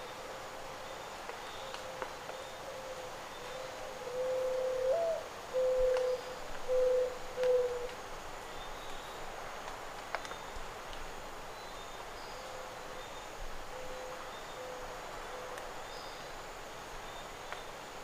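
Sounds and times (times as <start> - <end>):
Zenaida dove cooing: 2.7 - 7.9.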